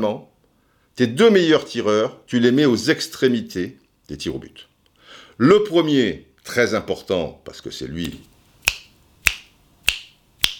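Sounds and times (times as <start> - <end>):
speech: 0.0 - 0.3, 1.0 - 4.7, 5.4 - 8.3
finger snap: 8.6 - 10.5.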